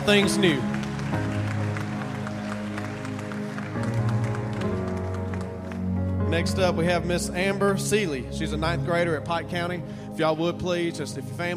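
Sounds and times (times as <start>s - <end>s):
speech: 0.0s - 1.4s, 6.3s - 11.5s
audience applause: 0.0s - 6.1s
sustained tones of music: 0.0s - 11.5s.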